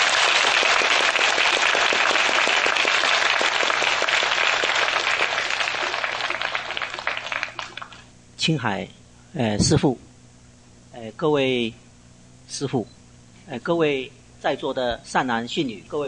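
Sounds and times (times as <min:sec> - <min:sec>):
warm audience applause: 0:00.0 - 0:08.0
speech: 0:08.4 - 0:10.1, 0:11.1 - 0:11.8, 0:12.5 - 0:16.0.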